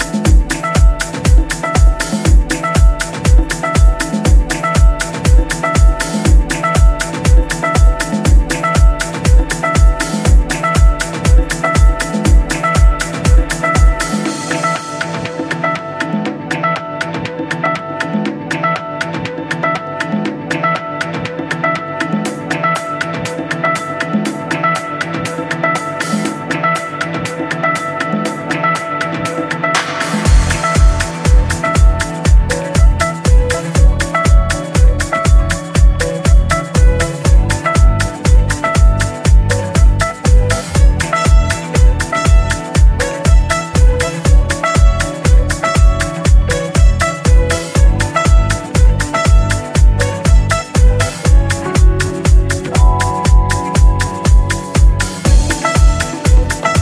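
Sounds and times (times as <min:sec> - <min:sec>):
instrumental remix: 0:00.0 - 0:56.8.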